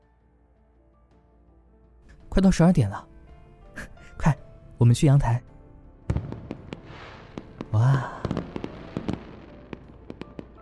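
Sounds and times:
speech: 2.4s - 3.1s, 4.2s - 5.5s
fireworks exploding: 6.1s - 10.6s.

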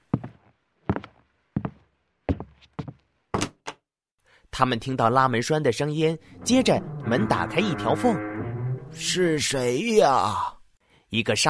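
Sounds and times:
heavy footsteps: 0.0s - 3.6s
speech: 4.6s - 8.3s, 8.9s - 11.4s.

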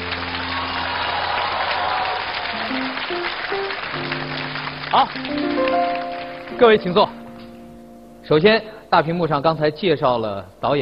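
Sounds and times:
audience applause: 0.0s - 7.2s
sustained musical tones stepping upward in pitch: 2.6s - 9.5s
speech: 4.9s - 7.2s, 8.3s - 10.8s.

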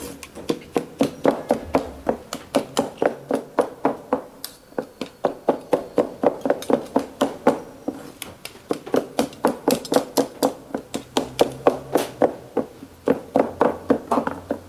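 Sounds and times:
chopping meat for roujiamo sandwiches: 0.4s - 7.6s, 8.7s - 14.4s.

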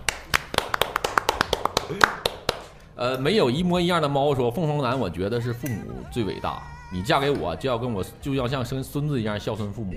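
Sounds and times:
single person clapping: 0.0s - 2.8s
speech: 1.9s - 2.2s, 3.0s - 9.9s.

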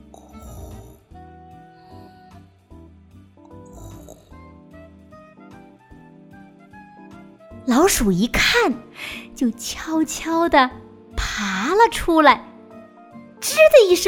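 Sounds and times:
cat snoring: 0.0s - 2.3s, 3.5s - 4.6s
music with sustained tones: 0.0s - 14.0s
speech: 7.7s - 10.8s, 11.4s - 12.5s, 13.8s - 14.0s.

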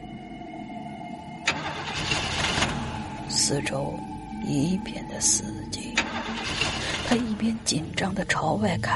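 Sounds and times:
car engine cranked by its starter failing to start: 1.4s - 3.3s, 5.9s - 7.7s
speech: 3.4s - 8.9s.

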